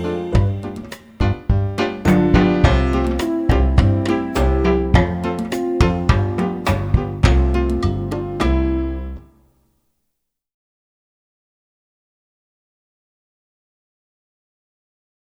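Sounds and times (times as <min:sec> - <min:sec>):
rumba music: 0:00.0 - 0:09.3.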